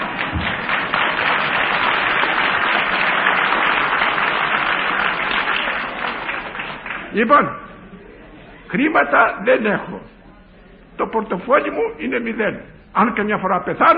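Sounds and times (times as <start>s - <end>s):
audience applause: 0.0s - 7.2s
speech: 7.2s - 7.6s, 8.7s - 10.1s, 11.1s - 13.9s.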